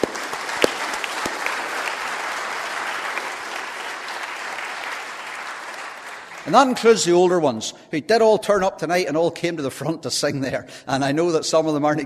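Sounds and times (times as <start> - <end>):
audience applause: 0.0 - 6.9
speech: 6.5 - 12.0.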